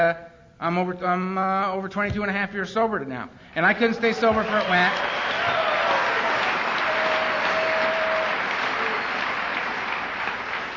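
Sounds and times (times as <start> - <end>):
speech: 0.0 - 5.6
audience applause: 4.0 - 10.7.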